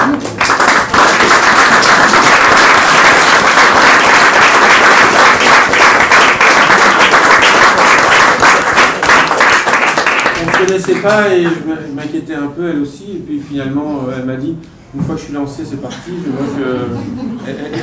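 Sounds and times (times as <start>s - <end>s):
audience applause at a talk: 0.0s - 11.2s
speech: 10.8s - 17.8s.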